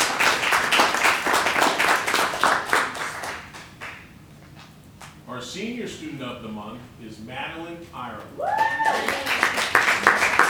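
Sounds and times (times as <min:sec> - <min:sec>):
audience applause: 0:00.0 - 0:04.1, 0:08.4 - 0:10.4
speech: 0:05.5 - 0:09.5.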